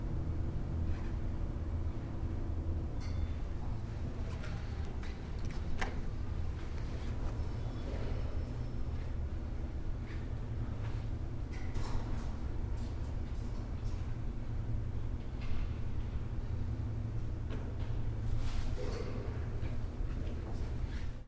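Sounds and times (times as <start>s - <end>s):
even elevator hum heard from elevator interior: 0.0s - 21.2s
elevator door bell heard from elevator interior: 3.0s - 3.5s.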